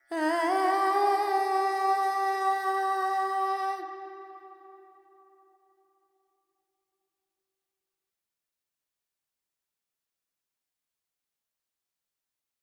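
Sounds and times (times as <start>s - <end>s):
Carnatic female alap in raga Panthuvarali with reverb: 0.0s - 4.2s.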